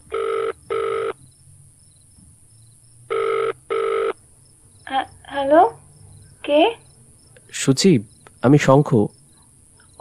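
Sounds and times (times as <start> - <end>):
telephone ringing after dialing from a public phone booth: 0.1 - 1.2, 3.1 - 4.2
speech: 5.0 - 5.8, 6.5 - 6.8, 7.6 - 9.2.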